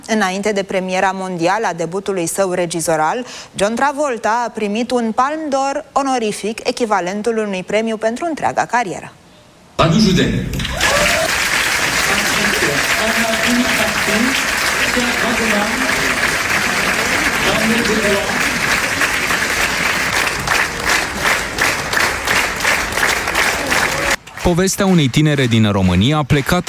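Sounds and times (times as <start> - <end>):
speech: 0.1 - 9.2, 9.8 - 11.2, 13.0 - 16.0, 17.7 - 18.4, 24.5 - 26.6
audience applause at film premiere: 10.6 - 26.6.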